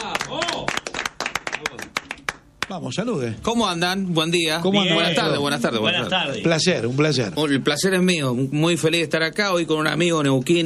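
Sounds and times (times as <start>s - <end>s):
audience clapping welcoming a guest musician: 0.0s - 2.8s
speech: 2.7s - 10.6s.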